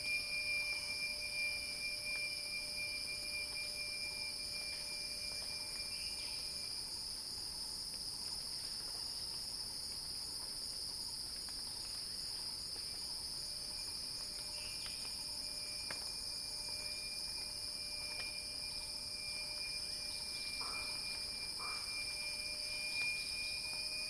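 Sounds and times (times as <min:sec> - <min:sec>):
thin whistle: 0:00.0 - 0:06.7, 0:13.6 - 0:24.0
cicadas whining: 0:00.0 - 0:24.0.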